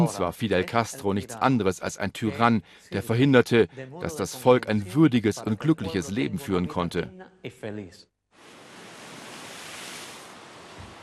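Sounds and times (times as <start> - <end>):
speech: 0.0 - 8.1
rough surf on the coast near Santiago de Cuba: 8.4 - 11.0.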